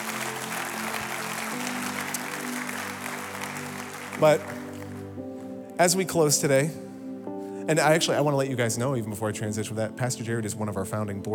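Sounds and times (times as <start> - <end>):
audience clapping: 0.0 - 5.5
speech: 4.2 - 4.6, 5.8 - 6.9, 7.7 - 11.3.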